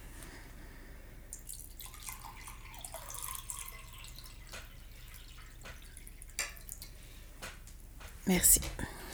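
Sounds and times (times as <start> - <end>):
soft drips: 0.1 - 8.2
water poured from an IKEA pitcher: 1.3 - 7.2
speech: 8.3 - 9.0.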